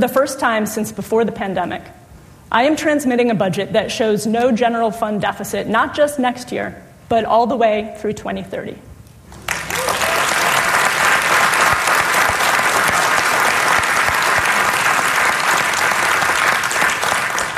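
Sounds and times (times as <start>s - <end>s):
speech: 0.0s - 8.9s
audience applause: 9.4s - 17.5s.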